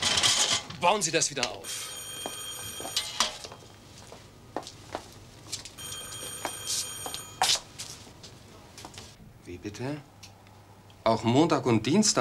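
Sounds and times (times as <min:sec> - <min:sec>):
speech: 0:00.8 - 0:02.0, 0:09.8 - 0:10.1, 0:11.1 - 0:12.1
old telephone bell ringing: 0:01.6 - 0:03.8, 0:05.8 - 0:07.6.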